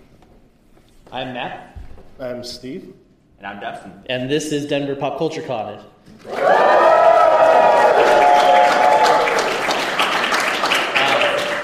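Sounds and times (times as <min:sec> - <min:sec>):
speech: 0:01.1 - 0:06.6
audience cheering and applause: 0:06.2 - 0:11.6.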